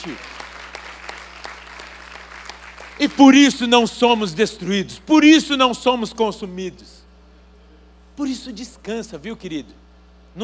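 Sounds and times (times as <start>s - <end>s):
speech: 0.0s - 0.4s, 3.0s - 7.0s, 8.2s - 9.8s
audience clapping: 0.0s - 3.7s
low steady hum: 0.0s - 10.4s.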